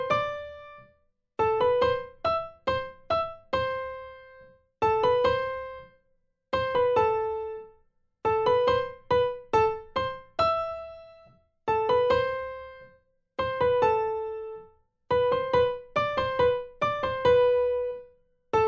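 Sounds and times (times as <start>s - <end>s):
primo part of four-hand piano practice piece playback: 0.0s - 5.9s, 6.6s - 7.7s, 8.3s - 18.6s.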